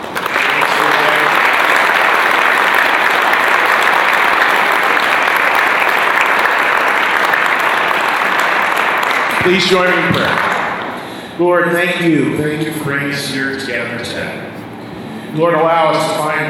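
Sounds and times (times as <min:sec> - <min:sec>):
audience applause: 0:00.0 - 0:11.0
speech: 0:09.4 - 0:10.5, 0:11.4 - 0:14.5, 0:15.3 - 0:16.4.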